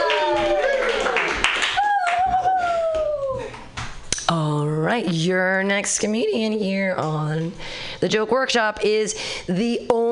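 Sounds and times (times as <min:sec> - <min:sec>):
high-pitched whoops and cheers: 0:00.0 - 0:03.5
audience clapping: 0:00.0 - 0:03.6
speech: 0:05.0 - 0:10.0.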